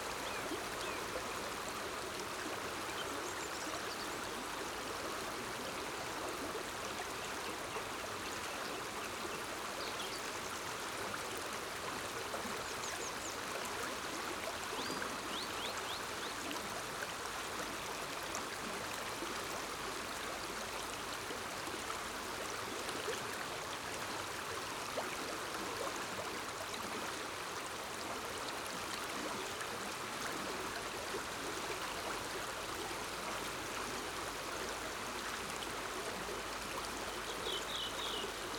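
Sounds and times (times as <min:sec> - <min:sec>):
mountain stream: 0:00.0 - 0:38.5.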